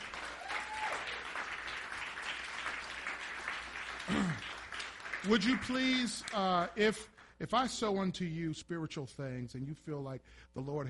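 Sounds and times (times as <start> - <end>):
audience hand clapping: 0.0 - 7.4
speech: 5.2 - 10.8.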